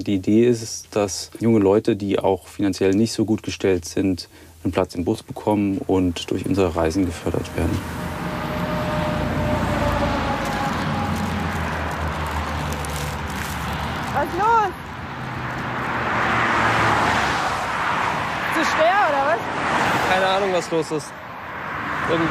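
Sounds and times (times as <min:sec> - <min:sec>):
speech: 0:00.0 - 0:08.2, 0:20.7 - 0:21.3, 0:22.1 - 0:22.3
motorway traffic: 0:05.4 - 0:22.3.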